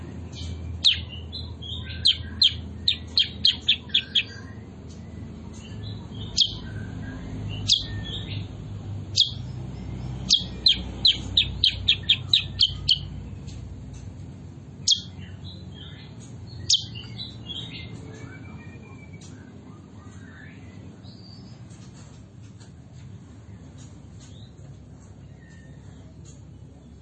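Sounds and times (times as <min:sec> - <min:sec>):
bulbul chirping: 0:00.3 - 0:13.4, 0:14.8 - 0:18.4.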